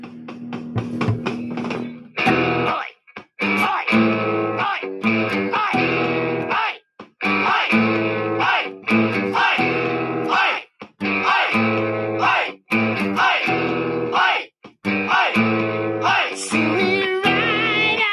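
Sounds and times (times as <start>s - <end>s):
distorted electric guitar riff of power chords: 0.0s - 6.6s, 7.2s - 18.0s.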